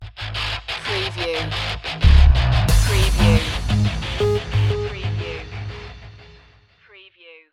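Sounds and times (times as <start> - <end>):
agony music stinger: 1.9 - 6.5.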